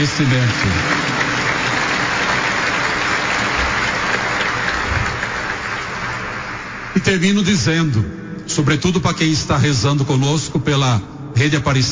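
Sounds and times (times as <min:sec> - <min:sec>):
speech: 0:00.0 - 0:01.2, 0:07.0 - 0:11.9
applause: 0:00.0 - 0:07.3.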